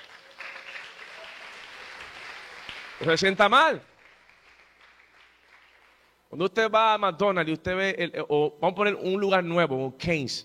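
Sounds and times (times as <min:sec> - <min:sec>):
faint applause from an audience: 0:00.0 - 0:06.1
speech: 0:03.0 - 0:03.9, 0:06.4 - 0:10.4.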